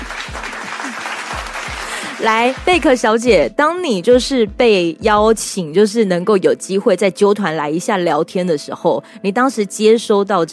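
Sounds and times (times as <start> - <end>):
crowd applause: 0.0 - 2.8
speech: 2.2 - 10.5.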